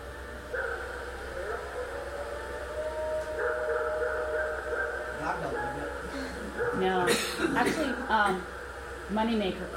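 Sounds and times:
low hum: 0.0s - 9.7s
recorded howl of an unidentified creature: 0.2s - 7.0s
speech: 7.1s - 9.7s.

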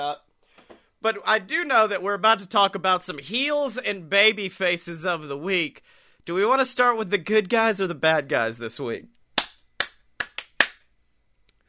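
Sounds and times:
speech: 0.0s - 0.3s, 1.0s - 9.2s
hands clapping: 9.4s - 10.8s.

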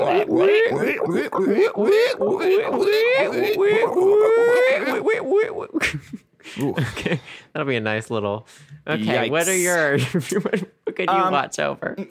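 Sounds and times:
person imitating pig squeals: 0.0s - 5.8s, 9.2s - 9.8s
speech: 0.2s - 4.4s, 7.6s - 12.0s.

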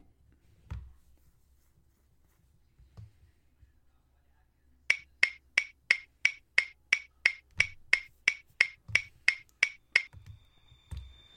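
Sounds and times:
clock ticking: 4.9s - 10.2s.

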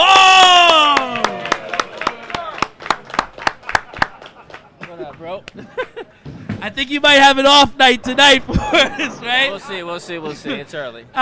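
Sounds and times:
round of applause: 0.0s - 5.2s
laughter: 3.6s - 6.3s, 8.4s - 11.1s
speech: 6.6s - 11.1s.

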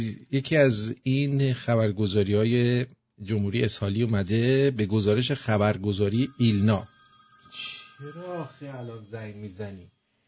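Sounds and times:
speech: 0.0s - 6.9s, 7.6s - 10.0s
telephone ringtone melody: 6.1s - 9.9s.

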